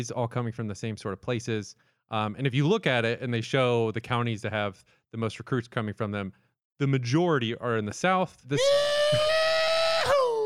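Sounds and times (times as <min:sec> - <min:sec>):
speech: 0:00.0 - 0:09.4
rebel yell: 0:08.6 - 0:10.4.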